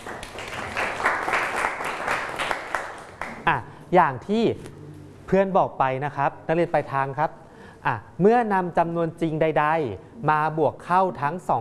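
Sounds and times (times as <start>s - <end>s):
small group clapping: 0.0s - 3.5s
speech: 3.5s - 11.5s.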